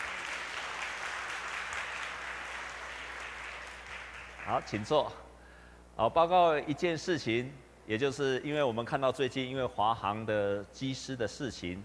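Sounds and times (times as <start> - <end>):
audience applause: 0.0 - 5.0
speech: 4.5 - 5.2, 6.0 - 11.8.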